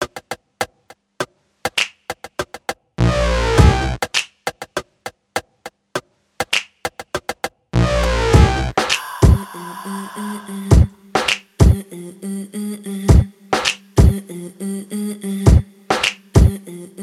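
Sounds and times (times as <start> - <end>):
drums: 0.0 - 9.4, 10.7 - 11.8, 13.1 - 14.2, 15.5 - 16.6.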